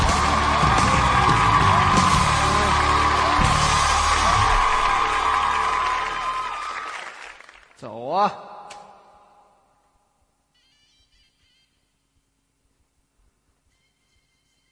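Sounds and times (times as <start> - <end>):
scattered whoops and shouts: 0.0 - 6.9
audience applause: 0.0 - 7.8.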